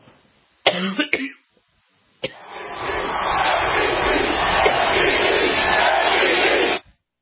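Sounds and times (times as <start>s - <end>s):
basketball arena crowd chanting: 2.3s - 6.8s.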